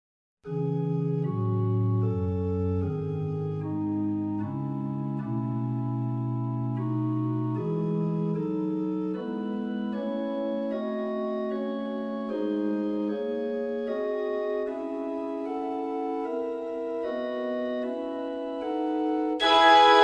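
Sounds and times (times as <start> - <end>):
instrumental music: 0.4 - 20.0.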